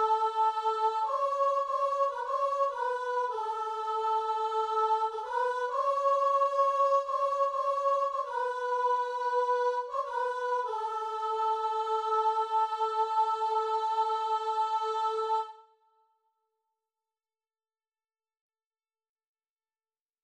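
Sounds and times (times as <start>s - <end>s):
soprano singing: 0.0s - 15.6s.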